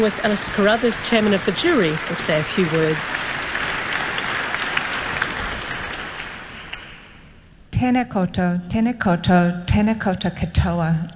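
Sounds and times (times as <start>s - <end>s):
speech: 0.0s - 3.4s, 7.8s - 11.1s
audience applause: 0.0s - 7.2s.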